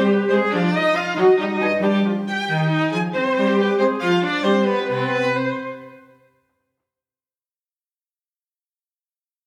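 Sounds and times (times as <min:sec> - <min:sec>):
string quartet playing in C minor: 0:00.0 - 0:06.1.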